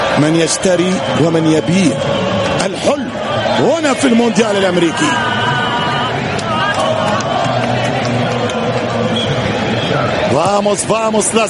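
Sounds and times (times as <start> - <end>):
Argentine football fans roaring at a World Cup match: 0.0 - 11.4
speech: 0.2 - 5.4, 10.4 - 11.4.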